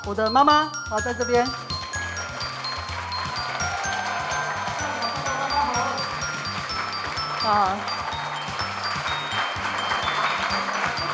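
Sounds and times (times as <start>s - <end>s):
speech: 0.0s - 1.6s, 7.4s - 8.0s
audience applause: 1.5s - 11.1s.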